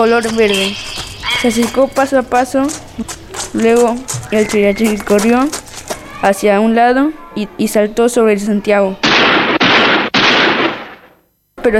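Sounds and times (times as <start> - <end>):
speech: 0.0 - 5.6, 6.2 - 9.4
gunshot fired at a strange animal: 9.0 - 11.3.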